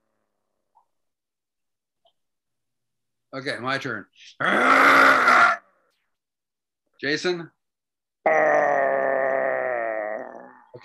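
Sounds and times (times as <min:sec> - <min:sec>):
speech: 0:03.3 - 0:05.4, 0:07.0 - 0:07.6, 0:08.2 - 0:08.8
person imitating an animal growl: 0:04.4 - 0:05.6, 0:08.2 - 0:10.8.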